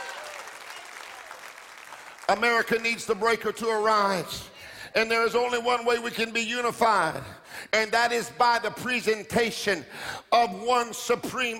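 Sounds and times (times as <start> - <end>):
audience clapping: 0.0 - 3.4
speech: 2.3 - 11.5.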